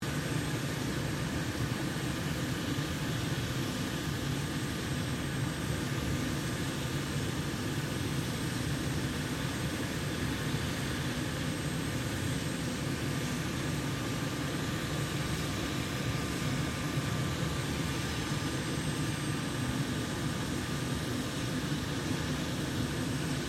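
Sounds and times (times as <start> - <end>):
1990 Sikorsky UH-60 Black Hawk helicopter engine idling: 0.0 - 23.4.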